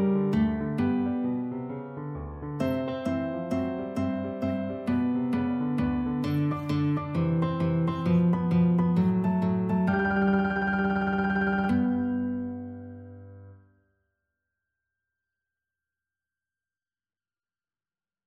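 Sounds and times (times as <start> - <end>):
boogie guitar music: 0.0 - 1.6, 2.4 - 13.5.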